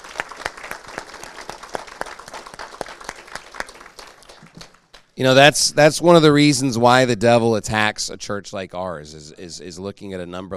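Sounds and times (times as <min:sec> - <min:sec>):
audience applause: 0:00.0 - 0:05.0
speech: 0:05.2 - 0:10.5.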